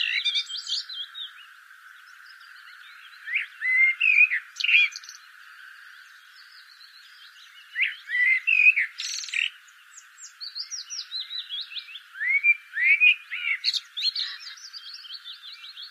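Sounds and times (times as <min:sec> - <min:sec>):
common blackbird warbling: 0:00.0 - 0:01.1, 0:03.1 - 0:05.2, 0:07.7 - 0:09.6, 0:10.2 - 0:15.3
thin bird chatter: 0:00.0 - 0:15.8.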